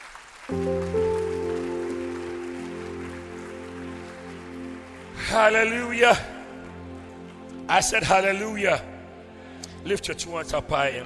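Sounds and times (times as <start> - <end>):
audience clapping hands: 0.0 - 7.7
sustained keyboard or organ chord: 0.5 - 11.0
speech: 5.3 - 6.3, 7.7 - 8.9, 9.8 - 11.0.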